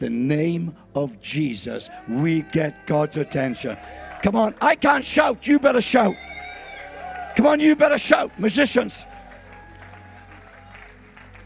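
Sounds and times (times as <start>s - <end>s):
speech: 0.0s - 6.3s, 7.4s - 9.1s
audience clapping: 3.3s - 11.4s.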